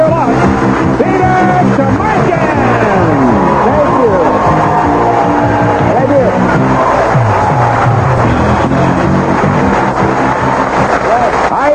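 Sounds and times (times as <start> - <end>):
game show studio audience cheering wildly: 0.0 - 11.7
whoops and shouts from a studio audience: 2.8 - 8.2.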